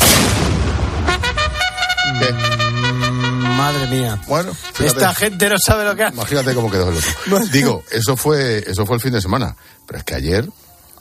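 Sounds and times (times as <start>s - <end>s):
artillery cannon firing on the ramparts of Ceuta: 0.0s - 1.8s
sustained horn-like tones: 1.1s - 8.2s
speech: 2.2s - 2.5s, 3.6s - 10.9s
laughter: 6.1s - 7.8s.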